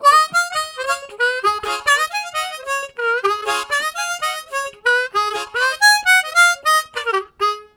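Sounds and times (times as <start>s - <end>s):
harmonica riffs: 0.0s - 7.7s.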